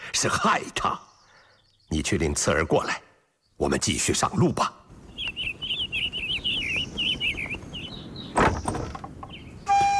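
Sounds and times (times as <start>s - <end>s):
bright bird chirps: 0.0s - 9.9s
speech: 0.2s - 1.1s, 1.9s - 4.8s
wooden house door opening with a rough scrape: 8.3s - 9.4s.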